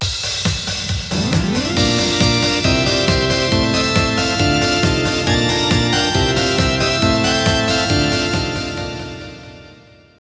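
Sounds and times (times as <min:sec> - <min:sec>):
strings in G sharp: 0:01.1 - 0:09.9.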